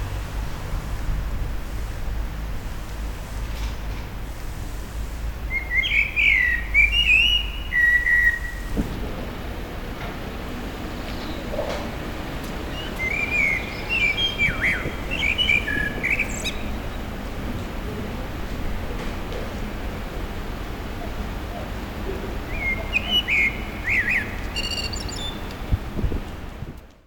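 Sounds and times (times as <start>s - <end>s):
steady low traffic rumble: 0.0s - 27.0s
common blackbird song: 5.5s - 8.8s, 10.7s - 18.0s, 20.9s - 25.8s.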